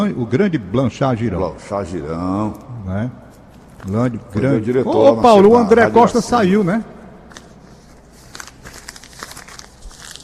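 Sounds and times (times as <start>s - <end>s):
speech: 0.0s - 3.2s, 3.8s - 7.0s
person eating a biscuit: 7.2s - 10.2s.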